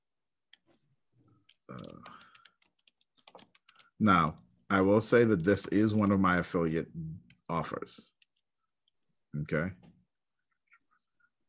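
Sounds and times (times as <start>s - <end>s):
computer keyboard typing: 0.4s - 4.4s, 5.0s - 6.2s, 7.2s - 9.0s
speech: 4.0s - 8.2s, 9.3s - 9.9s.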